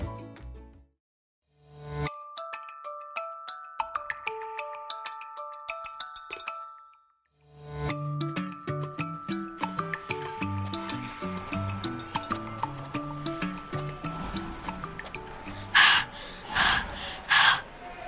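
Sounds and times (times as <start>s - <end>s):
light melodic music: 1.8s - 17.6s
person panting after climbing stadium bleachers: 15.4s - 17.8s.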